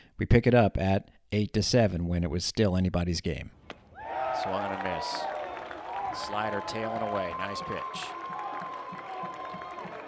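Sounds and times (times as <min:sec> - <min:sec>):
speech: 0:00.2 - 0:03.6, 0:04.4 - 0:05.4, 0:06.1 - 0:08.2
ballpark crowd cheering: 0:03.6 - 0:10.0.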